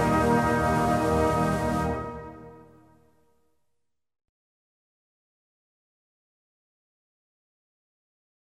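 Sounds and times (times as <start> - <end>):
band playing: 0.0 - 2.5.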